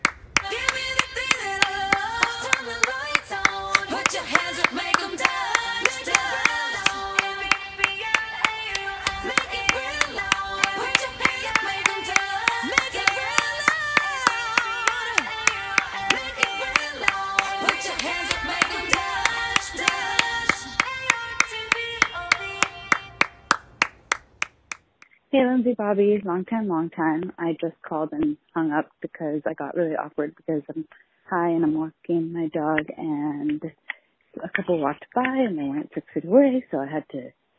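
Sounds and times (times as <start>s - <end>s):
hand clapping: 0.0s - 24.8s
speech: 25.7s - 33.8s, 34.4s - 37.4s.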